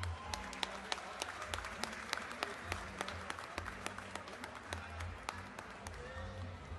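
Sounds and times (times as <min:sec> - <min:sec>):
round of applause: 0:00.0 - 0:06.6.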